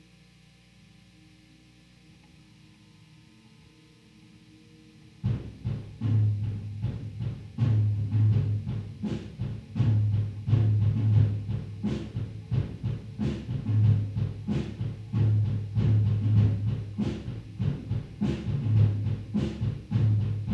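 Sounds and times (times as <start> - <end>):
bass guitar through amp recorded with M160 microphone: 5.4 - 20.5.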